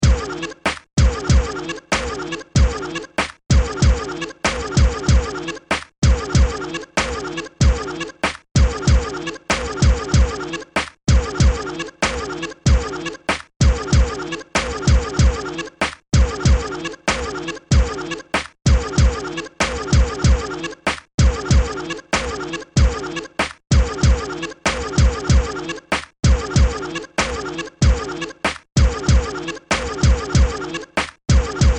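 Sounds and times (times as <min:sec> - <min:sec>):
hip hop instrumental beat: 0:00.0 - 0:31.7.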